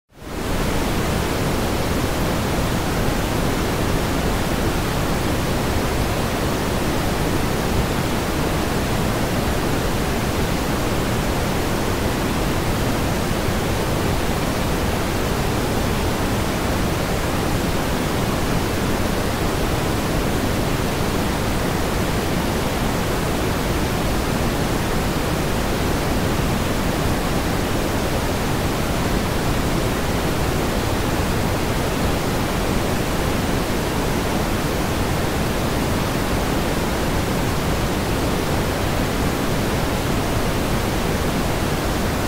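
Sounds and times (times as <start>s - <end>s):
pink noise: 0.2s - 42.2s.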